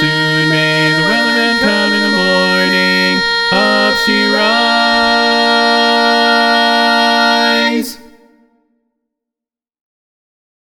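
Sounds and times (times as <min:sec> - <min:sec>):
TTBB choir singing a sea shanty medley: 0:00.0 - 0:08.6.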